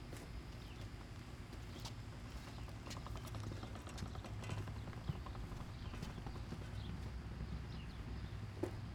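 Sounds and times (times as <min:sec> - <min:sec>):
backyard excavation for home construction: 0:00.2 - 0:08.8
wheelbarrow at backyard home construction: 0:01.5 - 0:07.1.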